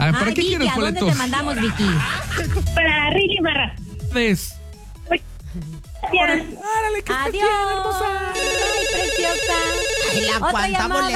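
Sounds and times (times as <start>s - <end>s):
laughter: 0.0s - 3.6s, 5.5s - 11.1s
music: 0.0s - 11.1s
speech: 0.2s - 11.1s
telephones ringing with incoming calls during a ticket giveaway: 7.8s - 11.1s.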